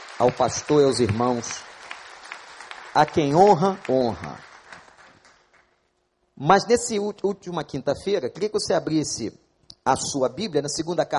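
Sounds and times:
church audience applause: 0.0s - 5.7s
speech: 0.2s - 1.7s, 2.9s - 4.5s, 6.4s - 11.1s.

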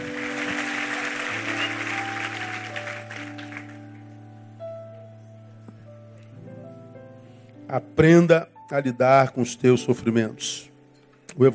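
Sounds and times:
audience applauding: 0.0s - 4.0s
speech: 7.7s - 10.7s, 11.4s - 11.5s.

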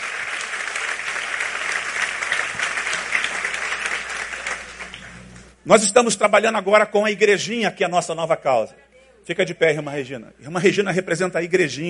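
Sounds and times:
audience applauding: 0.0s - 5.6s
speech: 5.6s - 11.8s.

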